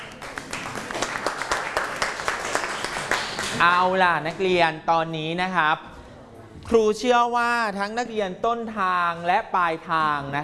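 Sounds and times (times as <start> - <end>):
students clapping: 0.0 - 3.7
speech: 3.6 - 5.9, 6.7 - 10.4.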